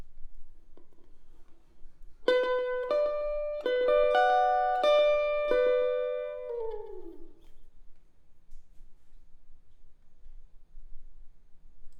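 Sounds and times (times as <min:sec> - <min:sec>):
electric guitar: 0:02.2 - 0:07.6.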